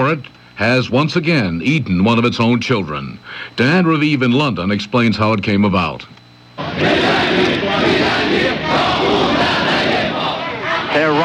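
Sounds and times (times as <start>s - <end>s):
speech: 0.1s - 9.0s
crowd chanting in the streets: 6.6s - 11.2s.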